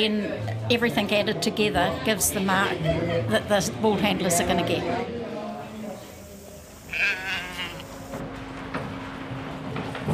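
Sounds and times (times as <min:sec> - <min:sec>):
speech: 0:00.0 - 0:05.2
voices: 0:01.6 - 0:08.2
sheep bleating in sheepyards: 0:06.8 - 0:08.2.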